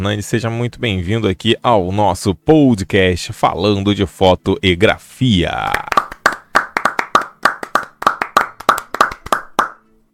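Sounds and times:
speech: 0.0s - 6.0s
hands clapping: 5.6s - 10.1s.

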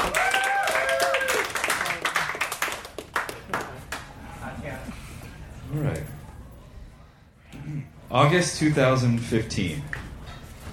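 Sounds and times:
people cheering: 0.0s - 2.7s
audience applause: 0.0s - 4.0s
speech: 8.1s - 9.9s.

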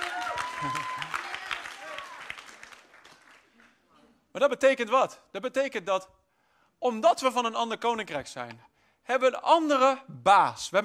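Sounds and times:
audience clapping: 0.0s - 3.9s
speech: 0.6s - 0.9s, 4.4s - 6.2s, 6.8s - 10.8s.

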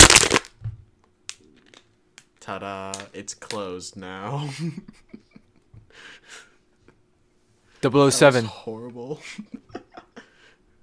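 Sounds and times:
plastic water bottle being crushed: 0.0s - 0.5s
sharp crack: 0.0s - 0.5s
speech: 2.5s - 5.2s, 7.8s - 9.7s.

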